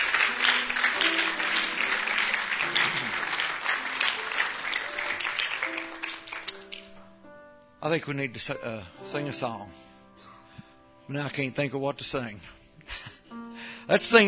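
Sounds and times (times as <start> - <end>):
audience applause: 0.0 - 6.8
speech: 7.8 - 9.9, 11.1 - 12.6, 13.9 - 14.2.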